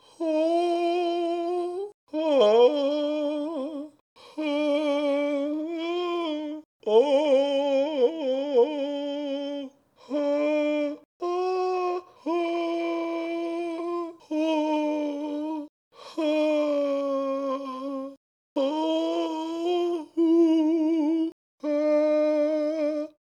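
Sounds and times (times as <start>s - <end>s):
person singing sadly: 0.0s - 23.2s.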